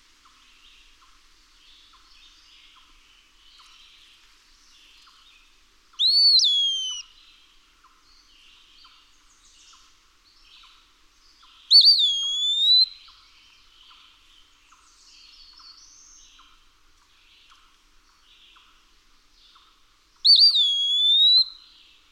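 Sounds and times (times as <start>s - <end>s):
Eastern wood-pewee whistled pee-a-wee call: 6.0s - 7.1s, 11.7s - 13.1s, 20.2s - 21.7s.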